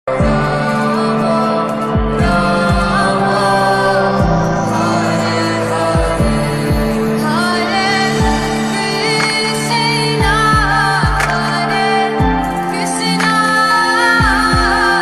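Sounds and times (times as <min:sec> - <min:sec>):
lo-fi bhajan ringtone: 0:00.1 - 0:14.9.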